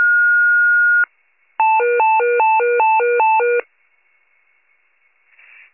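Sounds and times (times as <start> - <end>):
fire pager alert: 0.2 - 3.6.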